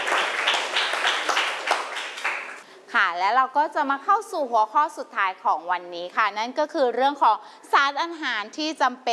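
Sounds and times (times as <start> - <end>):
audience applause for student representatives: 0.0 - 2.6
speech: 3.1 - 9.1.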